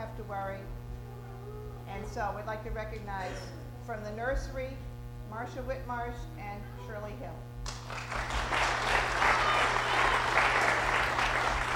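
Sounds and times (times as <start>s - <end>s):
speech: 0.3s - 0.8s, 1.9s - 9.7s
audience applause: 7.7s - 11.7s.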